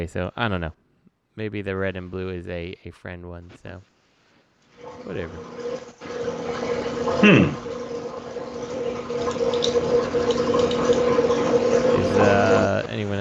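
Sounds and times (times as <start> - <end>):
speech: 0.0 - 0.8, 1.4 - 3.9, 4.8 - 6.1, 7.1 - 7.7, 12.2 - 13.2
washing machine running: 4.7 - 13.2
washing machine gurgling water draining: 4.8 - 13.0.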